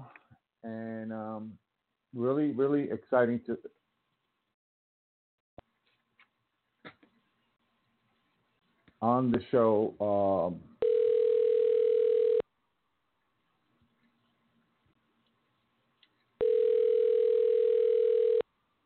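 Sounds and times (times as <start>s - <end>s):
speech: 0.7s - 3.8s, 9.0s - 10.7s
ringback tone of an outgoing telephone call: 10.8s - 12.4s, 16.4s - 18.4s.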